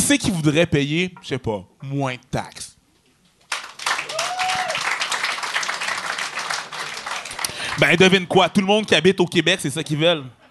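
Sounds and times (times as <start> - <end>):
speech: 0.1 - 2.7, 7.8 - 10.4
crowd applauding: 3.5 - 8.2
faint whistle or cheer: 4.0 - 4.9.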